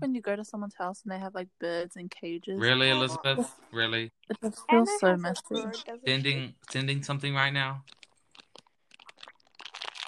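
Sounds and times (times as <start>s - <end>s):
speech: 0.0s - 8.0s
someone eating, crunchy chewing: 7.8s - 10.0s.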